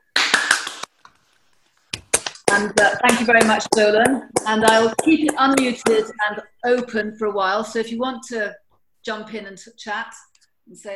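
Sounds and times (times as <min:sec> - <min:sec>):
online audience clapping: 0:00.0 - 0:00.9, 0:02.0 - 0:06.2
speech: 0:02.6 - 0:10.9.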